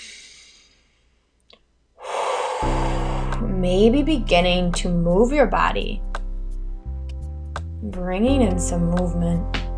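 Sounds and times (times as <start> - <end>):
person breathing in a guided breathing exercise: 0.0 - 1.2, 2.0 - 3.4
speech: 3.6 - 6.1, 7.8 - 9.6.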